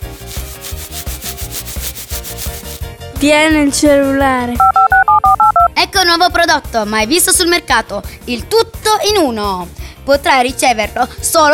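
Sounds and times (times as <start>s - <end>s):
scratching: 0.0s - 2.8s
speech: 3.2s - 5.3s, 6.0s - 11.5s.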